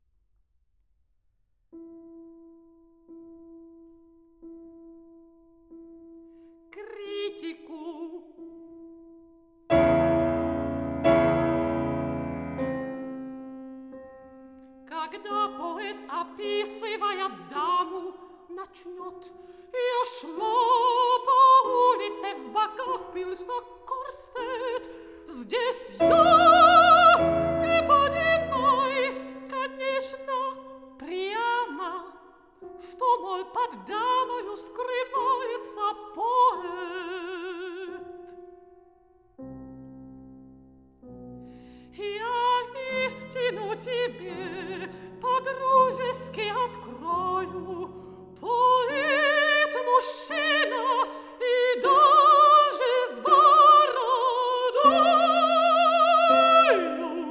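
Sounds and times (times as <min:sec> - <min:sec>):
piano: 0:01.8 - 0:57.3
soprano singing: 0:06.7 - 0:08.9, 0:09.7 - 0:39.0, 0:41.7 - 0:57.3.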